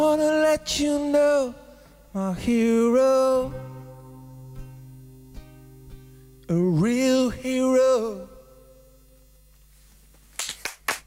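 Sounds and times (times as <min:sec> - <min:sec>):
speech: 0:00.6 - 0:03.7, 0:06.5 - 0:08.3
two people clapping: 0:10.3 - 0:11.0.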